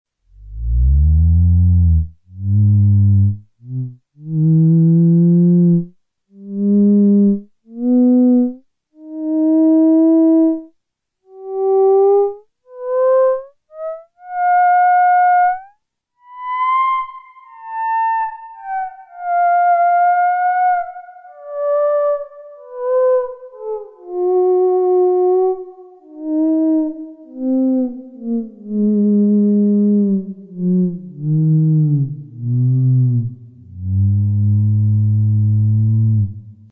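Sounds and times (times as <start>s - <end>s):
theremin: 0.4s - 10.7s, 11.3s - 36.6s.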